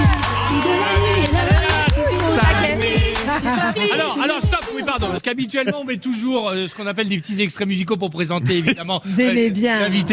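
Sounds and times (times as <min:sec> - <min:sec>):
live audience applause: 0:00.0 - 0:05.2
laughter: 0:00.4 - 0:07.4, 0:08.3 - 0:09.5
speech: 0:03.7 - 0:10.1.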